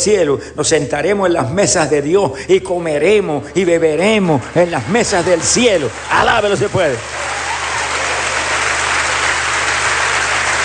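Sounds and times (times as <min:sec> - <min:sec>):
speech: 0:00.0 - 0:07.4
audience applauding: 0:04.2 - 0:10.6.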